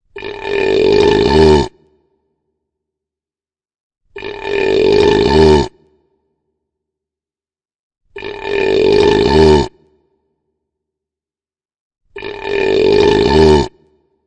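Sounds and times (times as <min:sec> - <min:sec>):
deep burp: 0:00.0 - 0:02.1, 0:04.1 - 0:06.1, 0:08.1 - 0:10.1, 0:12.1 - 0:14.1.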